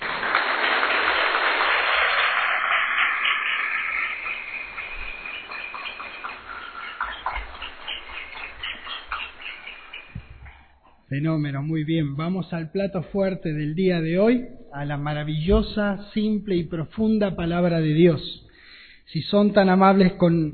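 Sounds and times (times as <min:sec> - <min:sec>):
audience applause: 0:00.0 - 0:10.6
speech: 0:11.1 - 0:18.4, 0:19.1 - 0:20.5.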